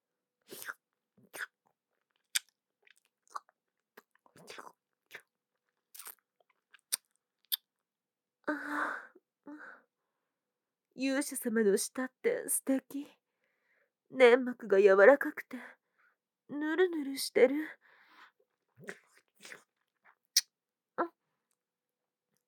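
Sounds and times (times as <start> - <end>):
speech: 11.0 - 13.2, 14.1 - 15.8, 16.5 - 17.8, 18.8 - 19.6
wet kissing sounds: 20.3 - 20.5.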